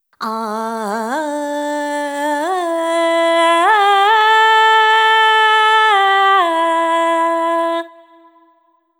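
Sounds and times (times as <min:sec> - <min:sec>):
ethnic female vocals: 0:00.2 - 0:08.6.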